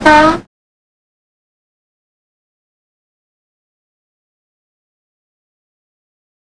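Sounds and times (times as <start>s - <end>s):
train klaxon: 0.0s - 0.5s.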